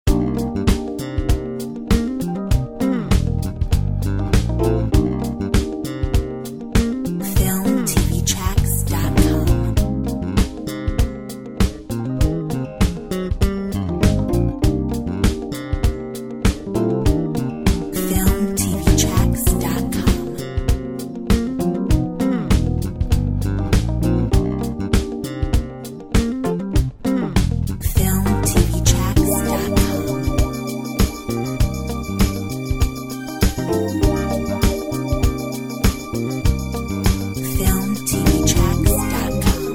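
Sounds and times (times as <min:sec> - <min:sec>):
sunset jazz music: 0:00.1 - 0:27.2, 0:27.8 - 0:39.7.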